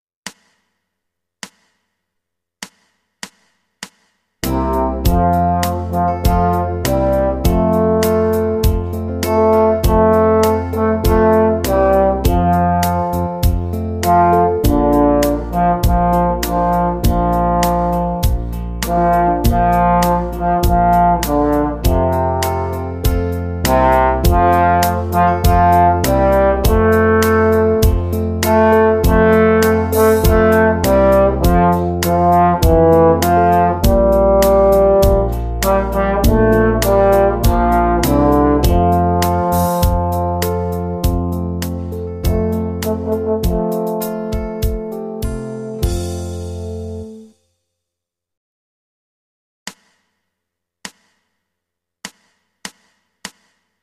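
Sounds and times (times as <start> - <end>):
blues song: 4.4 - 47.2.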